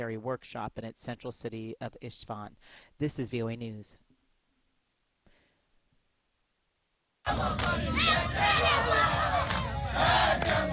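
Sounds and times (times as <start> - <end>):
speech: 0.0 - 4.0, 7.2 - 9.2, 10.0 - 10.7
crowd of young people chanting and singing: 7.3 - 10.7.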